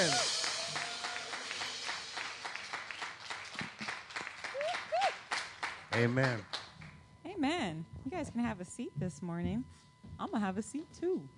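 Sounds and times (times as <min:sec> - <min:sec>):
audience clapping hands: 0:00.0 - 0:07.0
speech: 0:06.0 - 0:06.6, 0:07.4 - 0:11.3.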